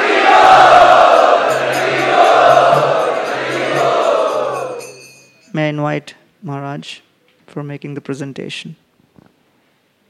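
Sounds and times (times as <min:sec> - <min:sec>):
audience loudly chanting to welcome special guests: 0:00.0 - 0:05.2
speech: 0:05.6 - 0:08.8.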